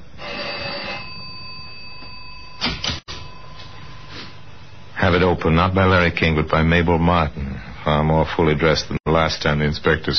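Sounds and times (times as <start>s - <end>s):
steady high tone: 0.0s - 5.8s
rattling metallic doorbell ringing: 0.2s - 4.0s
speech: 5.0s - 10.1s.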